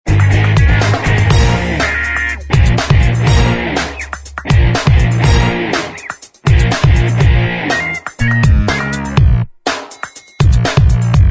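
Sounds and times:
instrumental music: 0:00.1 - 0:11.2.

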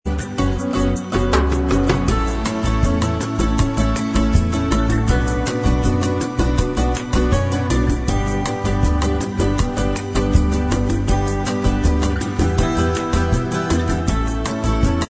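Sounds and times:
instrumental bossa nova music: 0:00.1 - 0:15.0.

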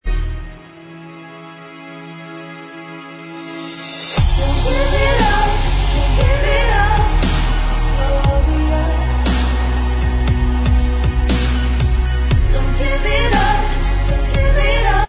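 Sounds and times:
backing track: 0:00.0 - 0:15.0
backing vocals: 0:04.2 - 0:15.0.

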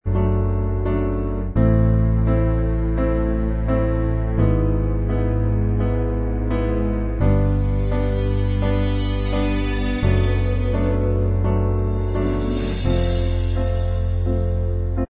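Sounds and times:
instrumental backing track: 0:00.1 - 0:15.0.

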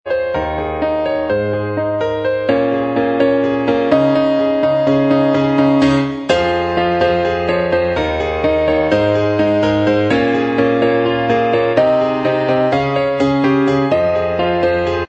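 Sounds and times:
acoustic instrumental music: 0:00.1 - 0:15.0.

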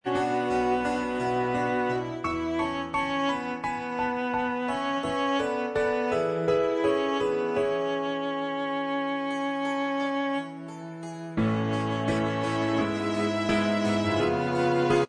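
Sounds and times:
J-pop instrumental track: 0:00.0 - 0:15.0.

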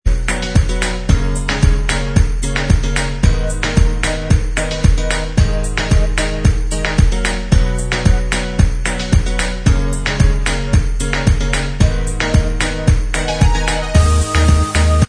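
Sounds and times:
instrumental music: 0:00.1 - 0:15.0.

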